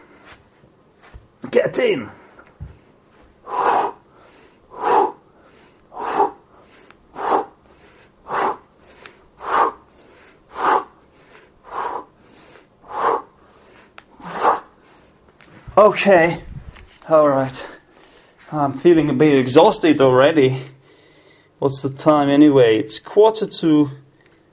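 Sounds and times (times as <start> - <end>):
speech: 1.5 - 2.2, 15.8 - 16.4, 17.1 - 17.7, 18.5 - 20.7, 21.6 - 24.0
heavy rhythmic breathing during push-ups: 2.1 - 16.4, 20.5 - 21.6.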